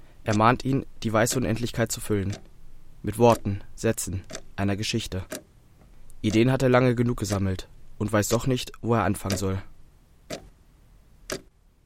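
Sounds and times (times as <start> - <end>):
faint steady hiss: 0.0 - 11.8
speech: 0.2 - 5.4, 6.2 - 9.7
clock ticking: 0.3 - 2.5, 3.1 - 5.4, 6.2 - 9.7, 10.3 - 10.5, 11.3 - 11.5.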